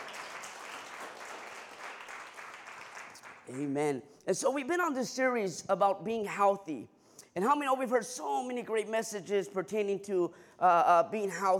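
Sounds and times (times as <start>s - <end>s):
audience clapping: 0.0s - 3.8s
speech: 3.5s - 11.5s.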